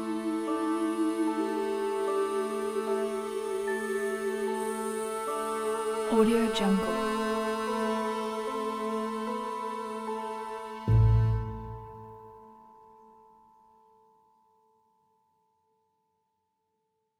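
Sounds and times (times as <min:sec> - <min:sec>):
mystic adventure music: 0:00.0 - 0:13.0.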